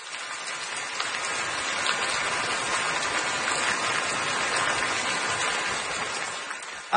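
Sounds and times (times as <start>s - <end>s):
rain falling, like a rain shower: 0.0s - 6.9s.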